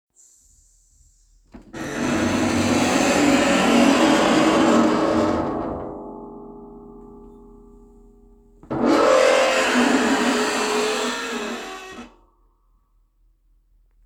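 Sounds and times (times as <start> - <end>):
dishwasher screech: 1.8 - 5.8, 8.7 - 12.2.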